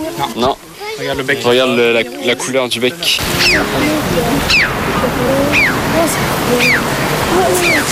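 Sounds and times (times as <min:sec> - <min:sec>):
speech: 0:00.2 - 0:07.8
red-billed chough calling: 0:03.1 - 0:07.8
steady surf-like rushing noise: 0:03.2 - 0:07.8.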